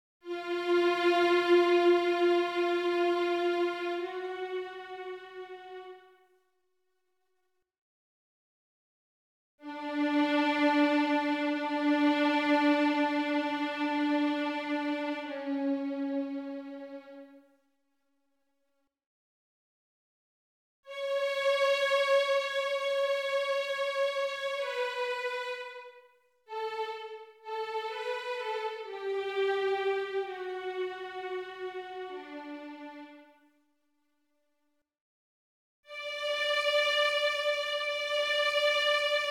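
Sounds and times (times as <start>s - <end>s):
violin piece for children: 0.2s - 6.2s, 9.6s - 17.5s, 20.9s - 33.5s, 35.9s - 39.2s.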